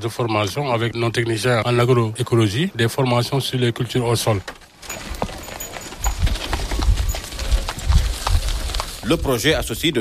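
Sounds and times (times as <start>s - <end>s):
speech: 0.0s - 5.2s, 9.1s - 9.9s
horse hooves clip-clopping as a cart collects garbage: 4.1s - 9.9s
horse-drawn garbage cart rolling rumble: 4.7s - 9.8s.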